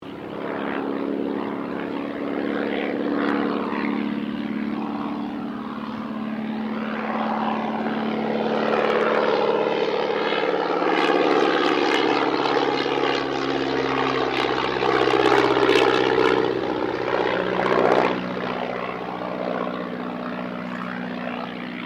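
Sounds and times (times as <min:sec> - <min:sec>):
de Havilland DH82A Tiger Moth aircraft passing: 0:00.0 - 0:21.8.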